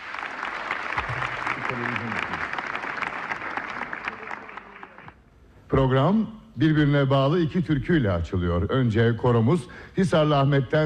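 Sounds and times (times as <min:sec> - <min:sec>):
audience applause as a radio choir comes on stage: 0:00.0 - 0:05.2
speech: 0:01.7 - 0:02.5, 0:05.8 - 0:10.8.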